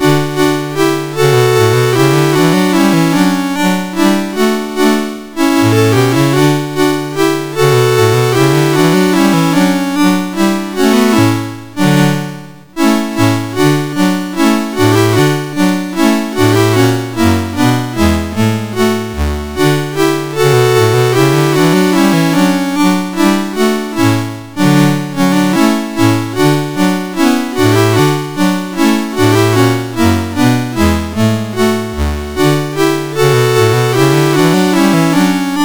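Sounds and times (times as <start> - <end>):
chorale on the MOS6581R2 sound chip: 0.0 - 35.6.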